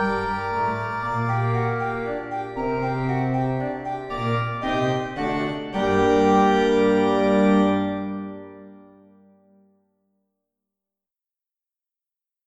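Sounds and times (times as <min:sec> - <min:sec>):
organ minuet in B flat major: 0:00.0 - 0:09.4.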